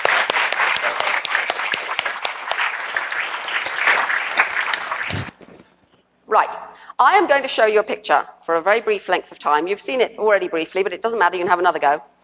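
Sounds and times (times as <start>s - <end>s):
audience applause: 0.0s - 5.4s
speech: 6.3s - 12.1s.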